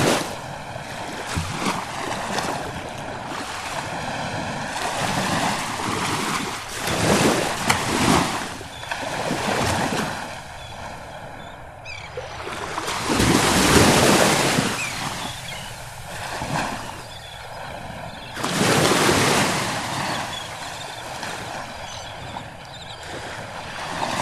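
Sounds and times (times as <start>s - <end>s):
ocean waves and surf: 0.0s - 24.2s.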